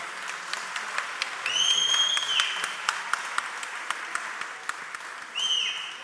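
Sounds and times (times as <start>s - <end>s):
audience applause at a party in Brighton: 0.0s - 6.0s
shrill sustained whistles: 1.5s - 2.7s, 5.3s - 6.0s.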